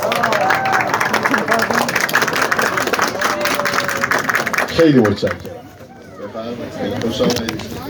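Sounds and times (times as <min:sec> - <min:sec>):
audience applause: 0:00.0 - 0:05.6
speech: 0:04.8 - 0:05.5, 0:06.9 - 0:07.4.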